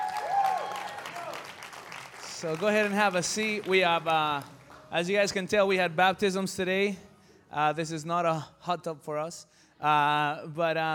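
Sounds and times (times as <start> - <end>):
audience applause: 0.0 - 4.8
speech: 2.4 - 10.9.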